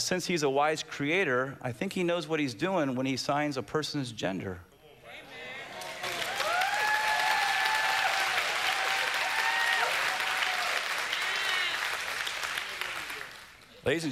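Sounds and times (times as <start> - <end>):
speech: 0.1 - 4.7, 13.8 - 14.1
audience clapping: 5.7 - 13.8
high cheers: 5.8 - 13.5.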